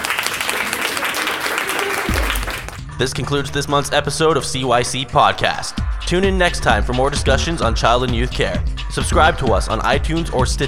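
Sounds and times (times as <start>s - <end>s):
audience clapping at a child and youth care student event: 0.0s - 2.8s
speech: 3.0s - 10.6s.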